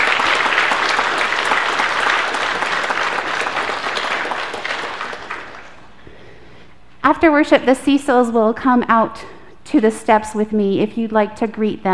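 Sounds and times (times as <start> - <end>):
audience applause: 0.0 - 5.9
speech: 7.1 - 11.9.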